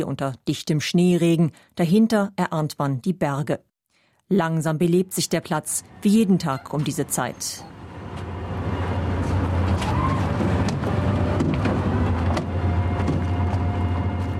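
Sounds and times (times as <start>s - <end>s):
speech: 0.0s - 3.7s, 4.3s - 8.3s
tour bus engine rumbling on a town square: 4.9s - 14.3s
faint street noise: 5.2s - 14.3s.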